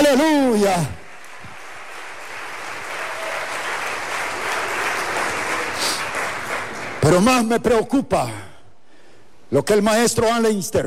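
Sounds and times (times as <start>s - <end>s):
speech: 0.1s - 1.0s, 7.1s - 8.5s, 9.5s - 10.8s
audience applause: 0.5s - 7.2s.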